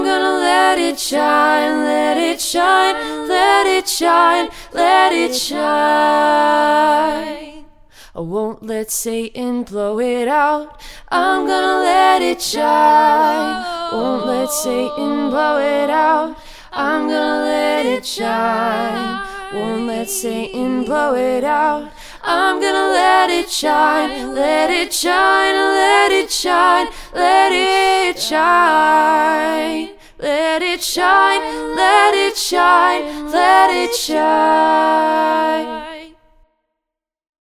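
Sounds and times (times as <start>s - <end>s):
a cappella singing: 0.0s - 36.5s.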